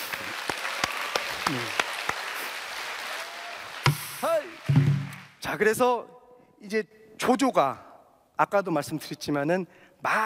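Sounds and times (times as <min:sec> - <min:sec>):
audience applause: 0:00.0 - 0:05.4
speech: 0:01.5 - 0:01.8, 0:05.5 - 0:10.2.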